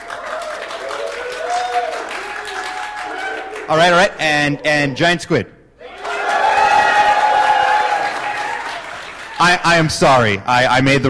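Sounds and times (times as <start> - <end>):
conference crowd of UX designers cheering and clapping in a vote: 0.0 - 4.1, 5.8 - 9.6
whoops from the crowd: 0.1 - 3.6, 5.8 - 8.8
speech: 3.7 - 5.6, 9.4 - 11.0.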